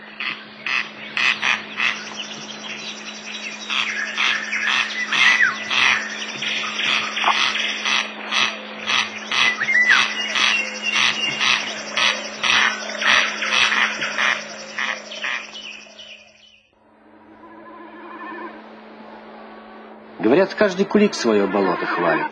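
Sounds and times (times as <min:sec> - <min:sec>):
corncrake calling in a meadow: 0:00.0 - 0:16.5
faint constant low hum: 0:00.0 - 0:22.2
speech: 0:20.4 - 0:22.2.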